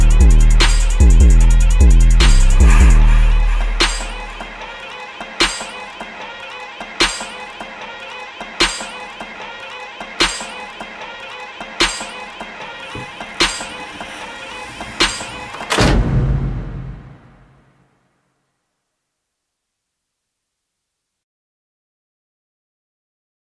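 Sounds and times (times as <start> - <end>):
cinematic trap beat: 0.0 - 15.9.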